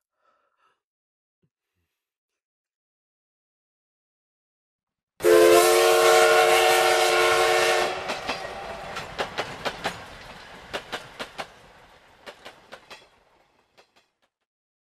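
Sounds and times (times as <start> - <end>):
train horn: 5.2 - 9.2
clickety-clack of train wheels over rail joints: 7.2 - 14.5.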